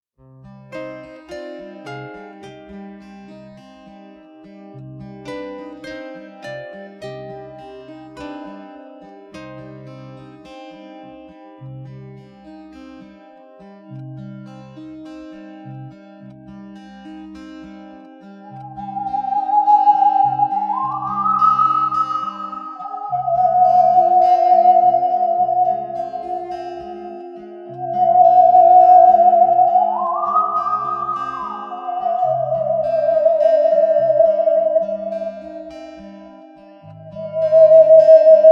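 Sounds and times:
theremin: 18.4s - 38.5s.

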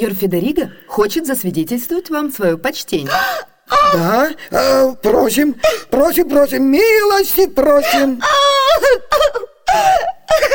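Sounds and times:
speech: 0.0s - 10.5s
woman sobbing: 3.0s - 6.0s, 7.6s - 10.5s.

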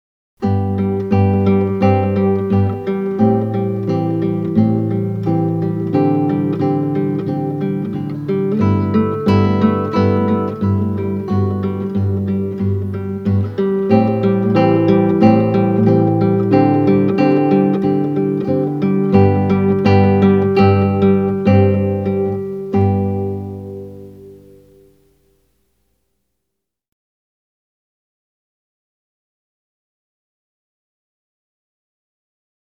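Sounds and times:
instrumental music: 0.4s - 25.4s.

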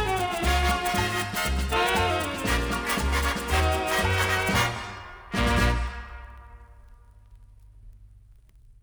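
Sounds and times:
samba orchestra: 0.0s - 6.8s.

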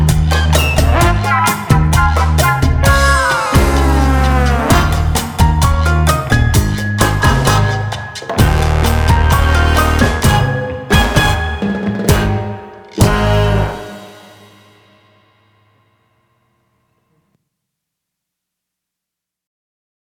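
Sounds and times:
cha cha music: 0.0s - 15.1s.

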